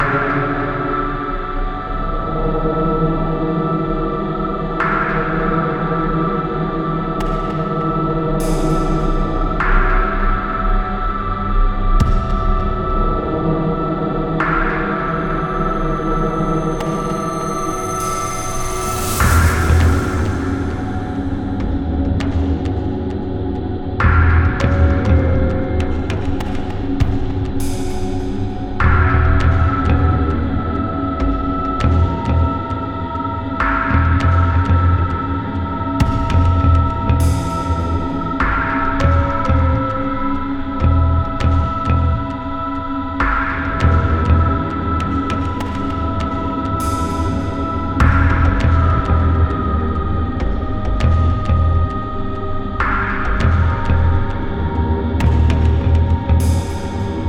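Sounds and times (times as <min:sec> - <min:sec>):
ambient music: 0:00.0 - 0:57.2.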